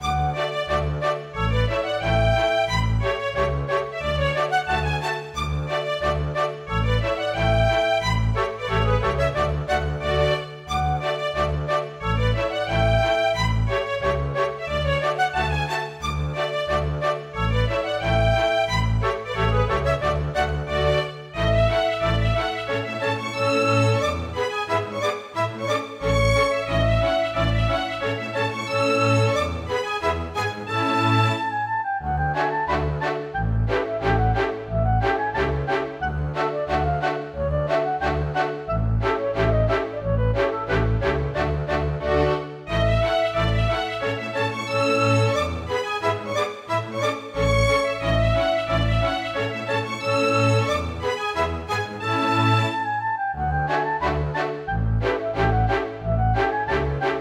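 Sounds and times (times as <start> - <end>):
polka music: 0.0 - 57.2.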